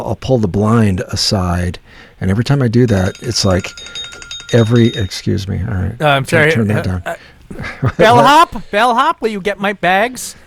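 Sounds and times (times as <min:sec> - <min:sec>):
speech: 0:00.0 - 0:10.4
old-school phone ringtone: 0:02.9 - 0:05.3
laughter: 0:06.4 - 0:08.7.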